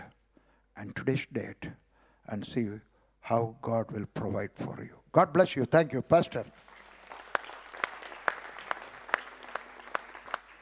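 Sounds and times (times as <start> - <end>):
speech: 0.8 - 6.7
audience applause: 6.6 - 10.6.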